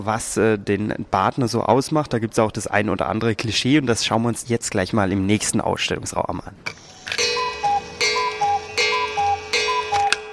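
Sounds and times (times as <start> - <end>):
speech: 0.0 - 7.2
faint ringing hum: 6.7 - 10.3
wall of cuckoo clocks ticking: 6.8 - 10.3.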